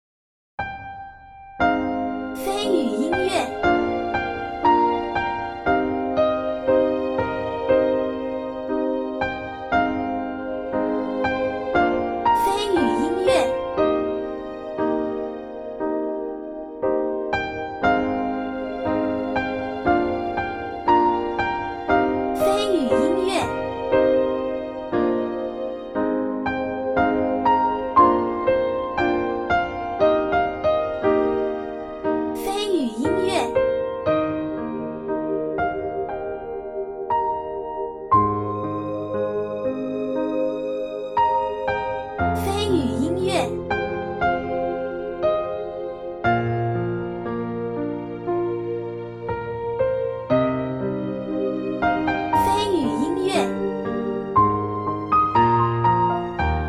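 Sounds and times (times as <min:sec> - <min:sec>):
soothing tender nostalgic music: 0:00.6 - 0:56.6.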